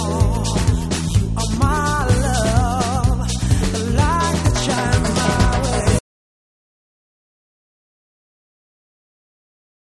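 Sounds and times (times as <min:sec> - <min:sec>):
vocal mix music: 0:00.0 - 0:06.0.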